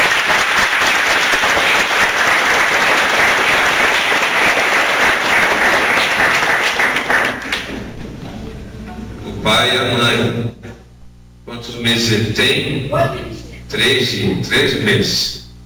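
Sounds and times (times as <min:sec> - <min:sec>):
round of applause: 0:00.0 - 0:07.7
speech: 0:09.6 - 0:10.4, 0:11.8 - 0:15.4.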